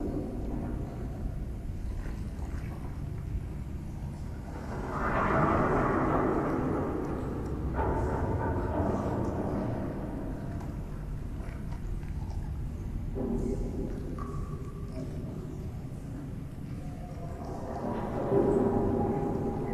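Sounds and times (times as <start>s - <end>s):
prison bathroom ambience: 0.0s - 19.7s.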